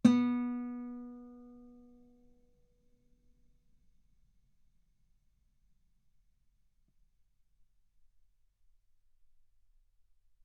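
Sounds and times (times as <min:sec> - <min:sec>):
guitar note B3: 0:00.0 - 0:01.7.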